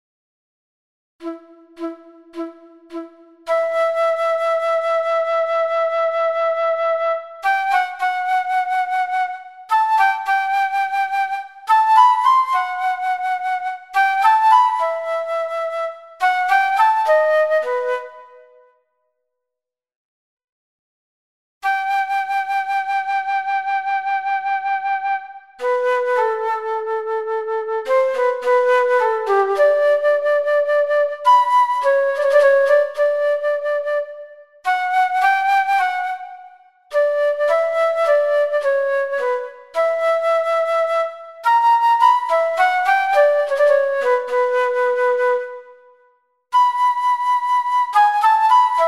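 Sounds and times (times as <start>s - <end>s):
flute sonata adagio in E minor: 1.2s - 18.9s, 21.6s - 48.8s.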